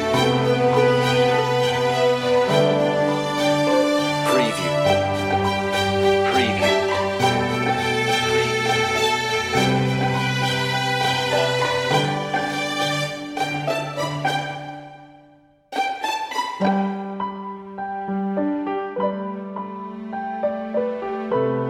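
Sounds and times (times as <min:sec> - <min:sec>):
piano: 0:00.0 - 0:21.6
strings: 0:00.0 - 0:21.6.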